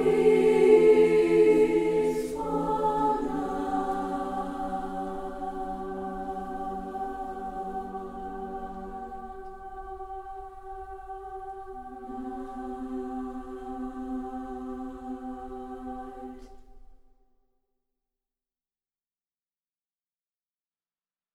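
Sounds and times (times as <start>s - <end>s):
SATB four-part choir singing: 0.0s - 16.9s.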